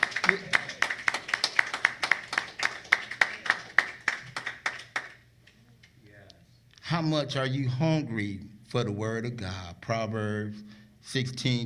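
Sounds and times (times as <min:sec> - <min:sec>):
audience clapping hands in praise in rhythm: 0:00.0 - 0:05.3
speech: 0:00.3 - 0:00.6, 0:06.9 - 0:11.6.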